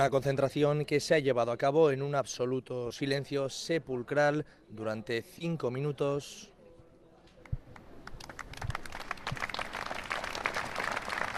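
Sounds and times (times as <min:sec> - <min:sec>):
speech: 0:00.0 - 0:06.5
applause from a gathered crowd: 0:08.1 - 0:11.3.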